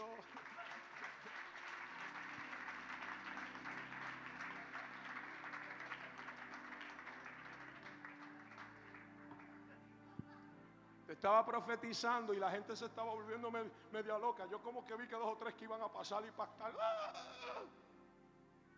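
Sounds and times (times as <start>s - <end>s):
audience applause: 0.0s - 9.8s
speech: 11.1s - 17.8s.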